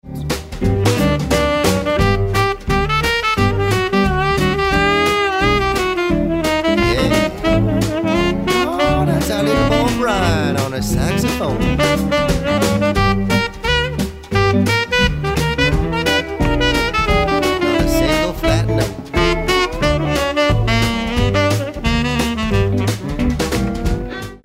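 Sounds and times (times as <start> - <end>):
saxophone: 0.2 - 24.4.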